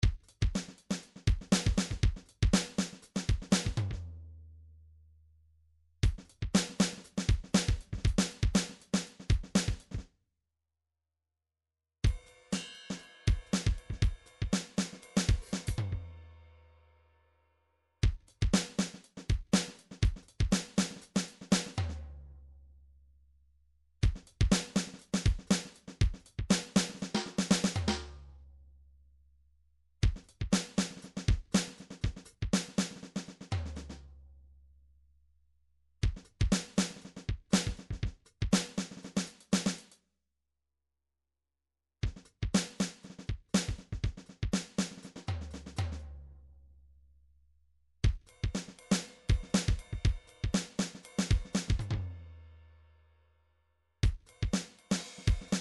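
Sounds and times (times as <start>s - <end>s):
MIDI drum pattern: 0.0s - 4.1s, 6.0s - 10.0s, 12.0s - 16.1s, 18.0s - 22.0s, 24.0s - 28.1s, 30.0s - 34.0s, 36.0s - 39.8s, 42.0s - 46.0s, 48.0s - 52.2s, 54.0s - 55.5s.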